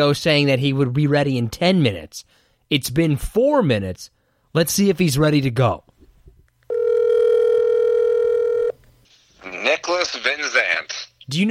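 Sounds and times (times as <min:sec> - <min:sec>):
speech: 0:00.0 - 0:05.9, 0:09.6 - 0:11.4
steady telephone tone of a call being placed: 0:06.7 - 0:08.8.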